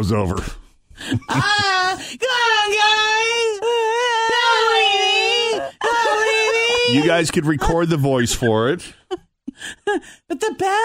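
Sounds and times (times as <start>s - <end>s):
speech: 0.0s - 3.4s, 6.9s - 9.0s, 9.6s - 10.8s
laughter: 1.0s - 1.9s, 4.6s - 10.0s
recorded child screaming: 2.7s - 7.0s.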